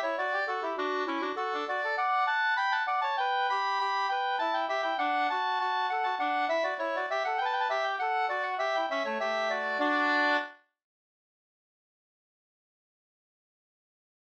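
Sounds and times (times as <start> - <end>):
slängpolska storpolska folk dance tune: 0.0 - 10.5.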